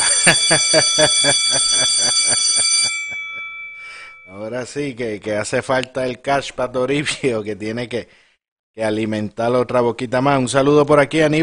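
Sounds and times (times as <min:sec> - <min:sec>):
laughter: 0:00.0 - 0:02.9
small bell ringing: 0:00.0 - 0:04.8
speech: 0:00.2 - 0:02.7, 0:04.3 - 0:08.2, 0:08.8 - 0:11.4.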